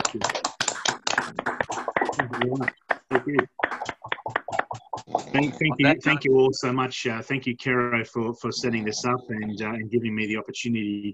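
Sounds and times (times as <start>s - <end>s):
round of applause for a webinar: 0.0s - 4.6s
laughter: 2.0s - 6.8s
speech: 2.2s - 3.7s, 5.3s - 11.1s.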